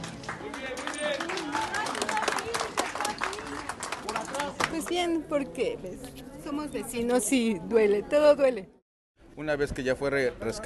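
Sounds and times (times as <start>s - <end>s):
neighbors and rescuers applauding: 0.0s - 5.1s
speech: 4.9s - 8.8s, 9.4s - 10.6s.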